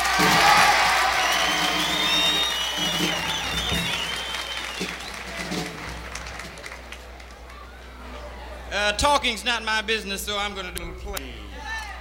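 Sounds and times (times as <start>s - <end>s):
audience applause: 0.0s - 7.8s
speech: 9.0s - 11.5s.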